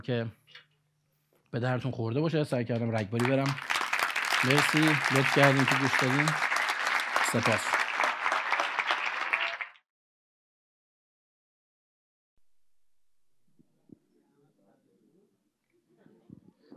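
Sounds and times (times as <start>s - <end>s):
speech: 0.0s - 0.6s, 1.5s - 3.7s, 4.4s - 6.5s, 7.3s - 7.8s
audience applause: 3.2s - 9.8s.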